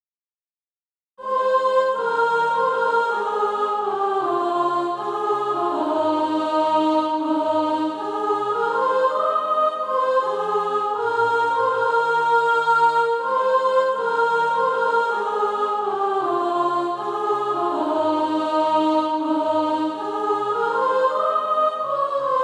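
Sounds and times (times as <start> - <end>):
soprano singing SATB practice music: 1.2 - 22.4.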